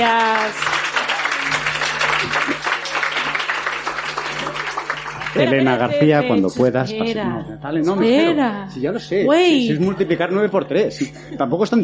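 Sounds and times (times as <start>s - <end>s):
applause: 0.0s - 6.4s
speech: 5.4s - 11.8s.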